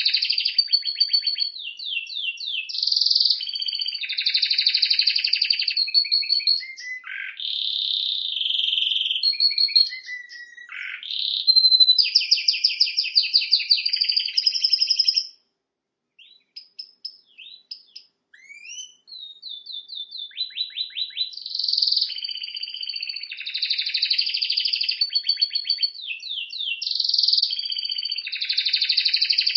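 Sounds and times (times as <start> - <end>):
canary singing: 0.0 - 15.4, 16.2 - 29.5.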